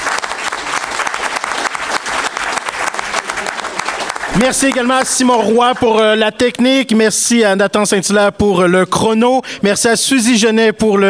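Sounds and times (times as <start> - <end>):
audience applause: 0.0 - 6.0
speech: 4.4 - 11.0.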